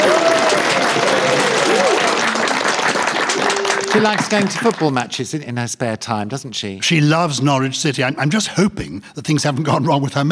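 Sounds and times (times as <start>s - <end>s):
studio audience applause for Delia Smith: 0.0s - 5.2s
speech: 3.9s - 10.2s.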